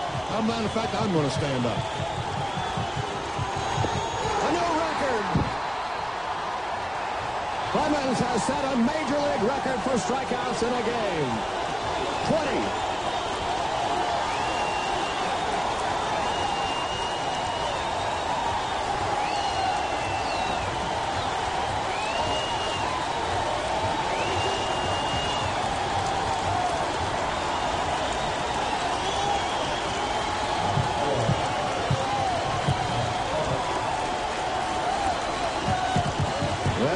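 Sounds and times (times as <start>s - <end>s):
high whistles from the crowd: 0.0s - 5.0s, 14.2s - 25.8s, 27.1s - 33.8s
large stadium crowd cheering a strikeout record: 0.0s - 36.9s
speech: 0.4s - 2.3s, 7.8s - 11.6s, 12.3s - 12.9s.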